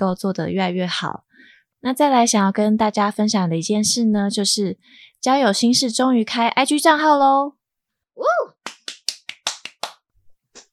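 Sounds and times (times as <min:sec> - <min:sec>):
speech: 0:00.0 - 0:07.6
hand claps: 0:08.6 - 0:10.7.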